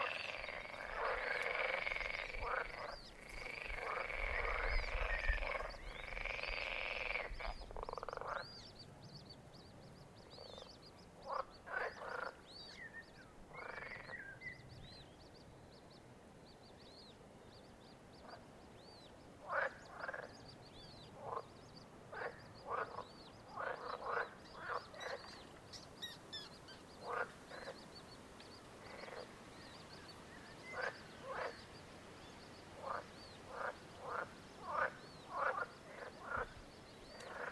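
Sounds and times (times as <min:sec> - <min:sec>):
frogs croaking: 0:00.0 - 0:08.7, 0:10.2 - 0:12.9, 0:13.5 - 0:14.6, 0:18.2 - 0:18.6, 0:19.3 - 0:37.5.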